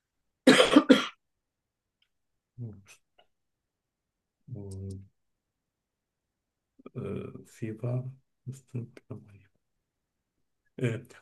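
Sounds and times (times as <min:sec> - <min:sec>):
person coughing: 0:00.5 - 0:01.2
speech: 0:04.6 - 0:05.1, 0:07.0 - 0:09.4, 0:10.8 - 0:11.2.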